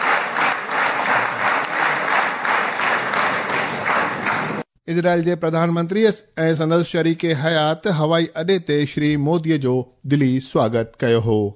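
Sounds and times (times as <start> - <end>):
Knesset members applauding Prime Minister Modi in the Israeli parliament: 0.0 - 4.7
speech: 4.9 - 11.5.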